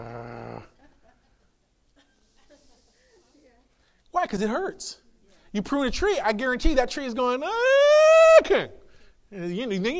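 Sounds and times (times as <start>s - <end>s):
voice imitating an animal growling at toenail clipping: 0.0s - 0.8s
speech: 4.2s - 9.9s.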